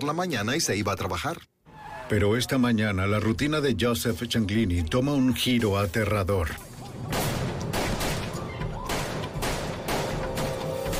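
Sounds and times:
speech: 0.0s - 7.2s
gunfire in a South Philadelphia mafia war: 7.0s - 10.9s.

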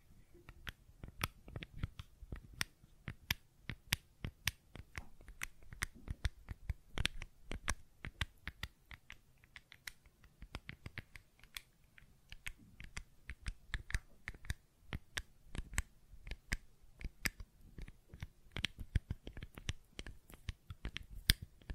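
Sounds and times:
fidget cube tapped and clicked: 0.5s - 21.7s.

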